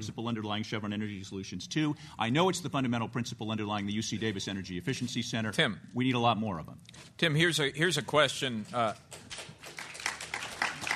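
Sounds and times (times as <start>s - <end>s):
speech: 0.0s - 9.8s
audience applause: 9.2s - 10.9s.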